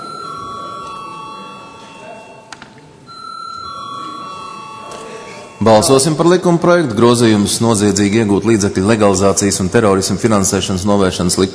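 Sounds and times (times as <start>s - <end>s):
parliamentary voting electric bell ringing: 0.0s - 6.6s
speech: 5.6s - 11.5s.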